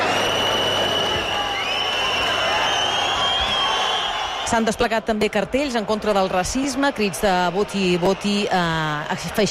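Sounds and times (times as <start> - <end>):
many shrill whistles in a packed square: 0.0 - 4.5
speech: 4.5 - 9.5.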